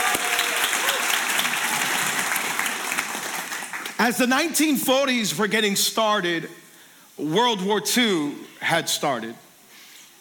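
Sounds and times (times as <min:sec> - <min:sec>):
Calvary Church congregation cheering: 0:00.0 - 0:04.0
Calvary Church congregation applauding: 0:00.0 - 0:04.6
speech: 0:04.0 - 0:06.6, 0:07.2 - 0:09.4.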